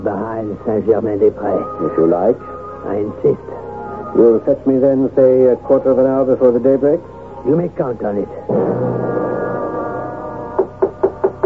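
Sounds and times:
speech: 0:00.0 - 0:09.3
knocking on a door: 0:10.6 - 0:11.4.

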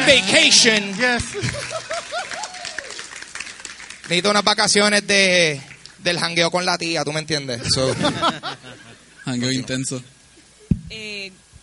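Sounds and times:
audience applause: 0:00.0 - 0:04.8
speech: 0:00.1 - 0:01.9, 0:04.1 - 0:10.2, 0:10.9 - 0:11.4
laughter: 0:01.1 - 0:02.6, 0:07.6 - 0:09.7.

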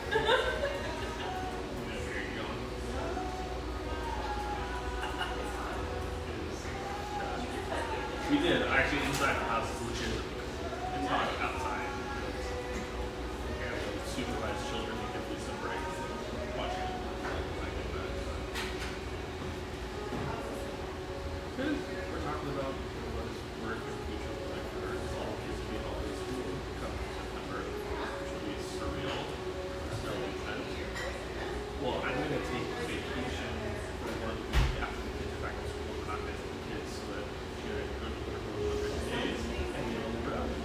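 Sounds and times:
laughter: 0:00.0 - 0:01.6, 0:04.7 - 0:05.8
low constant hum: 0:00.0 - 0:40.6.

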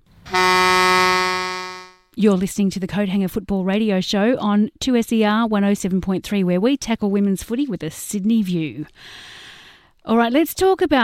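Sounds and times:
football match siren blast: 0:00.3 - 0:02.0
speech: 0:02.2 - 0:09.4, 0:10.0 - 0:11.0.

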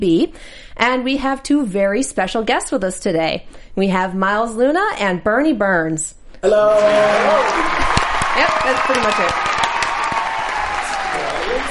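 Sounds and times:
speech: 0:00.0 - 0:07.8, 0:08.4 - 0:09.6
crowd cheering and applauding: 0:06.5 - 0:11.6.

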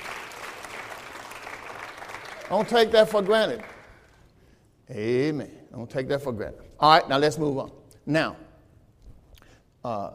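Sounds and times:
audience clapping hands: 0:00.0 - 0:04.3
speech: 0:02.5 - 0:03.7, 0:04.9 - 0:08.5, 0:09.8 - 0:10.1.

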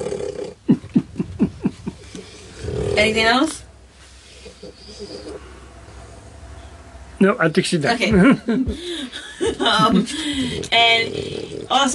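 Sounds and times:
laughter: 0:00.6 - 0:02.3, 0:08.1 - 0:10.6
short low rough snorting puffs: 0:01.8 - 0:06.2, 0:10.1 - 0:11.9
speech: 0:03.0 - 0:03.6, 0:07.2 - 0:11.9.

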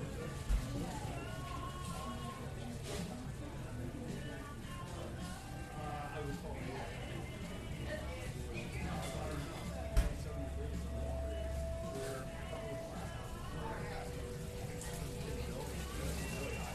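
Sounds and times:
overlapping chatter in a coffee shop: 0:00.0 - 0:16.7.

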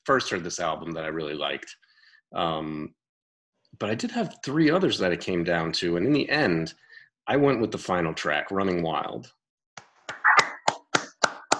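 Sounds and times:
speech: 0:00.0 - 0:03.0, 0:03.7 - 0:09.4
hands clapping: 0:09.8 - 0:11.5.

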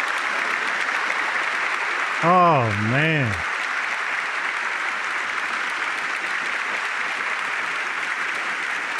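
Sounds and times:
long audience applause: 0:00.0 - 0:08.9
speech: 0:02.2 - 0:03.5.

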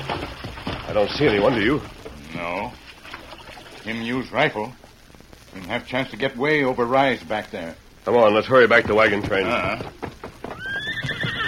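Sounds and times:
hooves clip-clopping: 0:00.0 - 0:03.8, 0:04.8 - 0:11.4
speech: 0:00.3 - 0:02.8, 0:03.8 - 0:04.8, 0:05.5 - 0:10.0
horse whinnying: 0:10.4 - 0:11.4.

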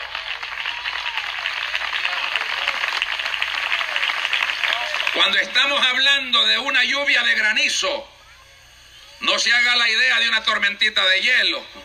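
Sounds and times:
audience applause: 0:00.0 - 0:05.8
faint crowd voices: 0:00.0 - 0:11.8
speech: 0:05.2 - 0:08.1, 0:09.2 - 0:11.8.

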